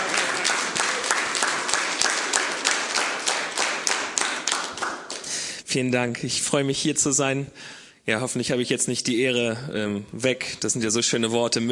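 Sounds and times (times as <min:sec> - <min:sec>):
crowd applauding: 0:00.0 - 0:05.3
speech: 0:05.7 - 0:11.7.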